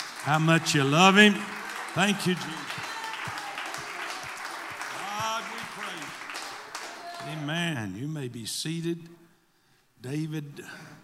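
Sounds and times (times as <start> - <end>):
congregation hand clapping: 0.0 - 7.6
speech: 0.2 - 2.8, 7.3 - 9.2, 10.0 - 10.9.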